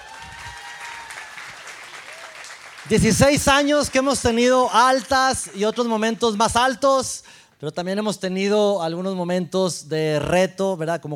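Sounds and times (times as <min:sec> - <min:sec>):
audience applause: 0:00.0 - 0:06.3
speech: 0:02.8 - 0:11.1.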